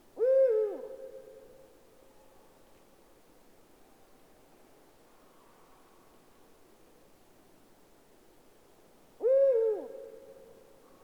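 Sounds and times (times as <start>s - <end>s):
Eurasian eagle-owl hoot: 9.2s - 9.9s.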